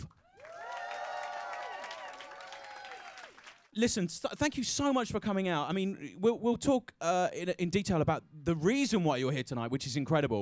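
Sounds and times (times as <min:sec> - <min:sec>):
audience cheering and applause: 0:00.2 - 0:03.7
speech: 0:03.8 - 0:10.4.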